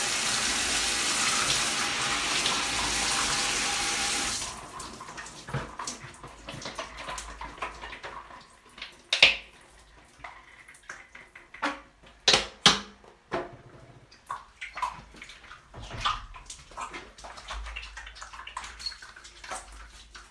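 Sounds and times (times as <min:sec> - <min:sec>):
shower water running: 0:00.0 - 0:11.3, 0:14.4 - 0:20.2.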